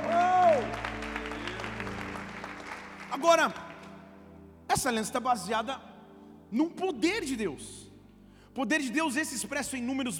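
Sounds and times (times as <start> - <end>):
crowd shouting: 0.0 - 2.0
audience applauding: 0.0 - 4.2
speech: 3.2 - 3.6, 4.7 - 5.9, 6.5 - 7.8, 8.6 - 10.1.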